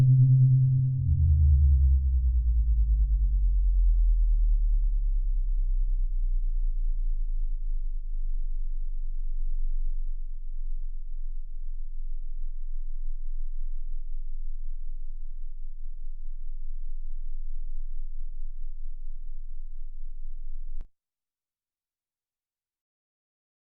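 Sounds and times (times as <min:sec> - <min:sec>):
low-pass filtered synth: 0:00.0 - 0:11.6.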